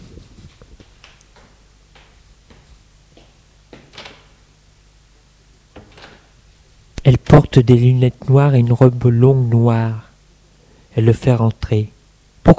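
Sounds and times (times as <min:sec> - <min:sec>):
faint low hum: 0:00.0 - 0:12.5
door opening clunks and rattles: 0:03.8 - 0:04.4, 0:05.7 - 0:06.3
speech: 0:07.3 - 0:10.0, 0:11.0 - 0:12.5.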